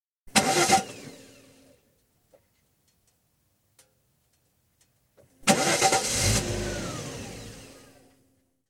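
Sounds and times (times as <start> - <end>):
1986 Jaguar Sovereign 3.6 litre engine false starts outside: 0.3 - 1.4, 5.4 - 8.0.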